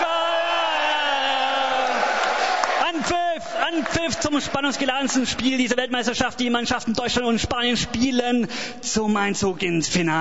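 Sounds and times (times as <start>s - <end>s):
stadium crowd cheering: 0.0s - 5.5s
speech: 3.1s - 10.1s.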